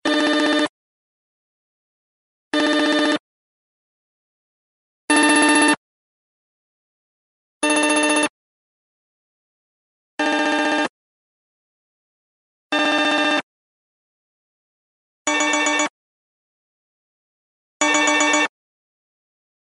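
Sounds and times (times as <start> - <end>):
HTC One ringtone: 0.0 - 0.7, 2.6 - 3.2, 5.1 - 5.8, 7.6 - 8.3, 10.2 - 10.9, 12.7 - 13.4, 15.3 - 16.0, 17.8 - 18.5.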